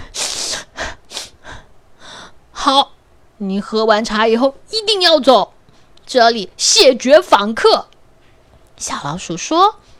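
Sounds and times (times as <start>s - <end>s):
loud nose blowing: 0.0s - 1.4s
speech: 2.6s - 7.9s, 8.8s - 9.8s.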